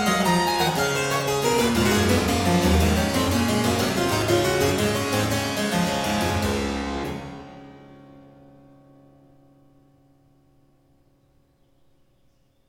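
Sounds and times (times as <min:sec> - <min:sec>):
baroque suite courante in E flat major: 0:00.0 - 0:08.2.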